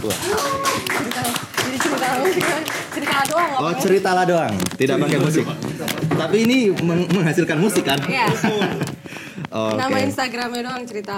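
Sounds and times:
speech: 0.0 - 0.7, 2.0 - 8.8, 9.5 - 11.1
applause: 0.0 - 3.6
laughter: 7.5 - 9.4.

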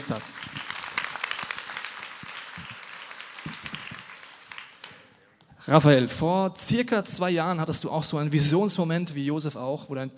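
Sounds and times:
speech: 0.0 - 0.6, 5.7 - 10.1
audience applause: 0.0 - 5.2.

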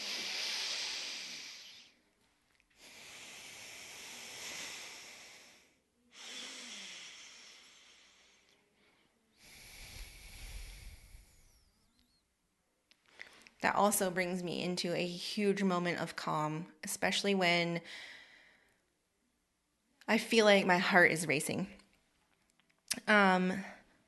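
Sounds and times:
alternate nostril breathing: 0.0 - 2.0, 2.8 - 12.2
speech: 13.6 - 18.2, 20.1 - 21.8, 23.0 - 23.8.

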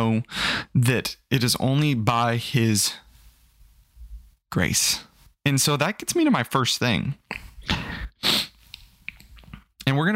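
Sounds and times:
speech: 0.0 - 3.0, 4.5 - 8.4, 9.9 - 10.1
stifled sneeze: 7.6 - 8.6.

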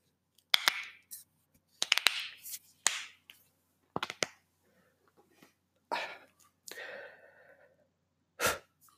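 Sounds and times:
knuckles cracking: 0.5 - 1.0, 1.8 - 3.2, 4.0 - 4.4.

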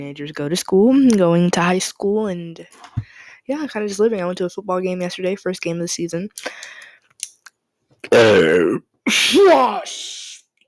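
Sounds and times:
speech: 0.0 - 6.9, 8.0 - 10.4
breaths: 2.9 - 3.5, 6.4 - 7.2
person burping from acid reflux: 8.0 - 9.2.

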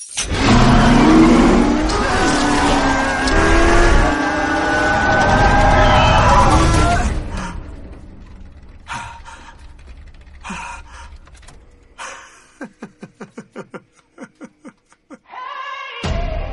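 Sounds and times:
creaking: 0.0 - 15.2
race car engine starting and revving in a film scene: 0.2 - 12.1
laughter: 12.0 - 15.3.

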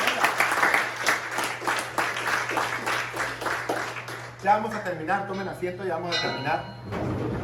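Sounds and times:
crowd applauding: 0.0 - 5.0
speech: 4.4 - 7.3.

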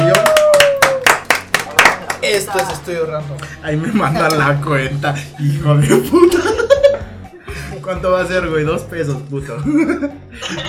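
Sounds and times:
clapping: 0.0 - 2.9
speech: 2.5 - 6.6, 7.9 - 10.6
laughter: 5.9 - 7.2.

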